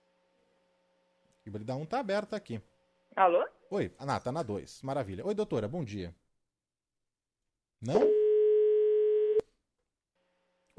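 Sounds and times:
speech: 0:01.5 - 0:06.2, 0:07.8 - 0:08.2
telephone line tone after a dropped Skype call: 0:07.9 - 0:09.4.

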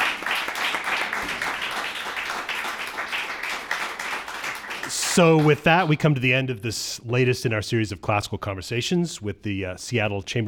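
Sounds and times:
audience applause: 0:00.0 - 0:06.0
speech: 0:05.2 - 0:10.4.

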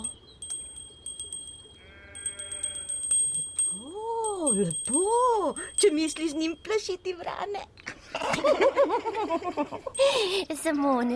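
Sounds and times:
small bell jangling: 0:00.0 - 0:07.2, 0:09.9 - 0:10.4
bleating animal-like tone: 0:01.8 - 0:03.0
speech: 0:04.5 - 0:11.1
laughter: 0:08.1 - 0:09.9.

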